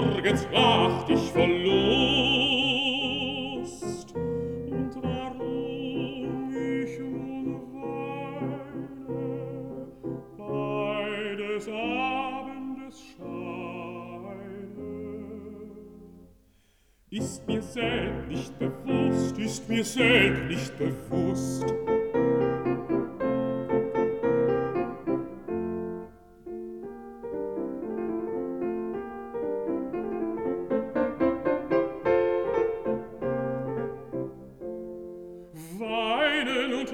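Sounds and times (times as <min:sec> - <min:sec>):
person singing: 0:00.0 - 0:16.1, 0:17.1 - 0:22.8, 0:35.5 - 0:36.9
piano: 0:00.0 - 0:36.9.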